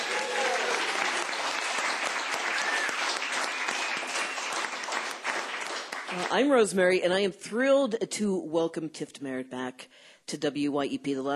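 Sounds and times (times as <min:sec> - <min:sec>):
applause from a studio audience of supporters: 0:00.0 - 0:06.5
speech: 0:06.2 - 0:11.3.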